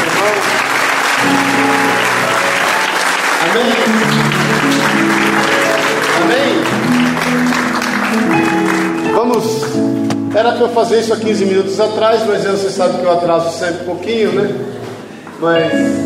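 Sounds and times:
audience applauding: 0.0s - 10.0s
speech: 3.6s - 4.1s, 9.2s - 14.8s, 15.4s - 16.0s.

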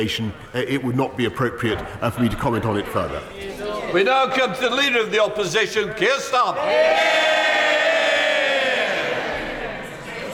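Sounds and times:
speech: 0.0s - 7.4s
parliament chamber crowd cheering or booing: 6.5s - 9.8s.

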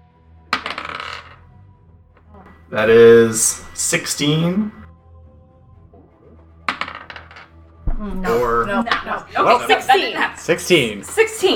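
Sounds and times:
dice rolling on a hard table: 0.5s - 1.5s, 2.5s - 4.1s, 6.7s - 7.6s
speech: 2.7s - 4.8s, 8.0s - 11.5s
laughter: 8.2s - 10.4s.

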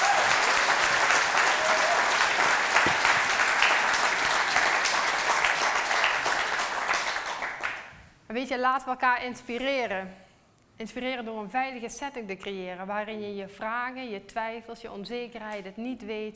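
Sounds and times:
audience applause: 0.0s - 7.9s
speech: 8.5s - 10.2s, 10.8s - 16.3s.

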